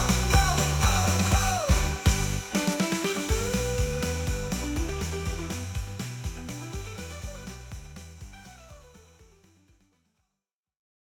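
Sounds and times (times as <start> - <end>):
Christmas song: 0.0 - 7.7.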